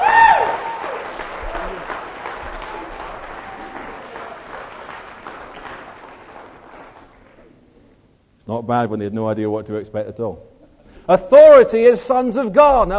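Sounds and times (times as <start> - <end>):
audience applause for the actors: 0.0 - 7.6
speech: 8.5 - 10.5, 11.1 - 12.9.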